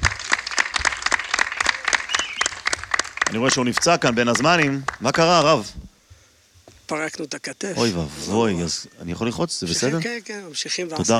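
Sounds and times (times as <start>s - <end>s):
audience applause: 0.0s - 5.5s
speech: 3.3s - 5.8s, 6.9s - 11.1s.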